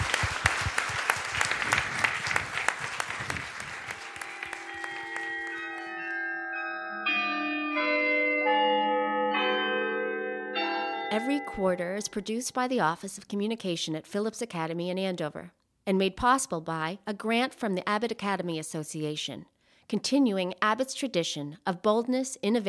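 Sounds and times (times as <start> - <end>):
audience applause: 0.0 - 5.9
ringing bell tones playing a slow melody: 3.9 - 12.2
speech: 11.2 - 22.6.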